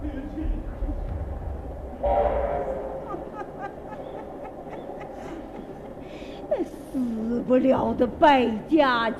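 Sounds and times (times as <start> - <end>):
train passing: 0.0 - 9.1
train horn: 2.0 - 3.0
laughter: 2.8 - 7.0
speech: 7.5 - 9.1.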